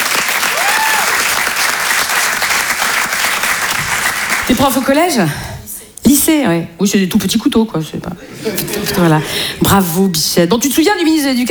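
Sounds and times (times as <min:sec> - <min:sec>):
audience applauding loudly: 0:00.0 - 0:05.0
speech: 0:04.5 - 0:05.5, 0:06.1 - 0:11.4
laughter: 0:08.2 - 0:09.6.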